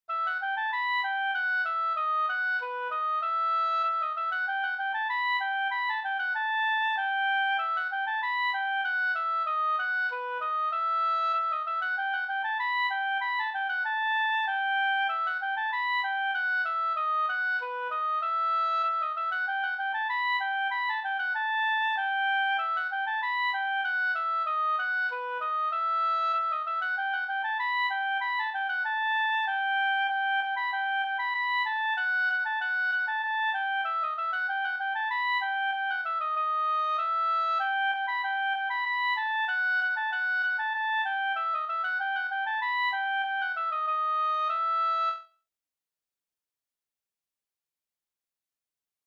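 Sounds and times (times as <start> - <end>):
slängpolska folk dance tune: 0.1 - 45.2.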